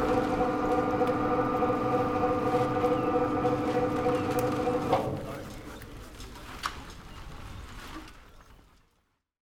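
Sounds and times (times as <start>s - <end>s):
crane for lifting boats: 0.0s - 6.5s.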